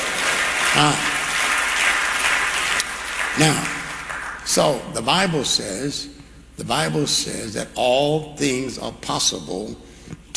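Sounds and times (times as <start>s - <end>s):
audience clapping hands: 0.0s - 4.8s
speech: 0.7s - 1.1s, 3.4s - 3.7s, 4.5s - 10.3s.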